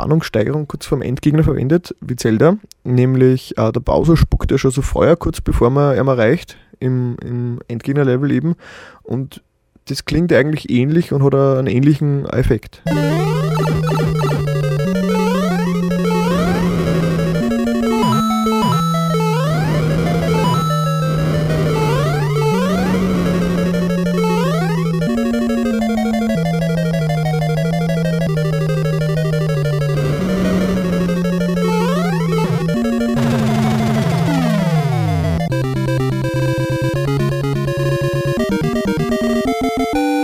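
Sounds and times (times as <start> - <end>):
speech: 0.0 - 14.4
fanfare: 12.9 - 40.2.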